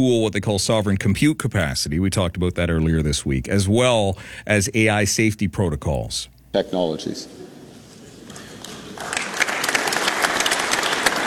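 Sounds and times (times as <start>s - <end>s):
speech: 0.0s - 7.5s
audience applause during a speech: 7.7s - 11.2s.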